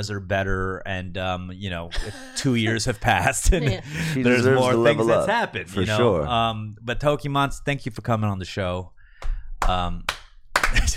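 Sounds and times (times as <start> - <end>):
speech: 0.0 - 10.9
slow clap by a few people: 9.2 - 10.9.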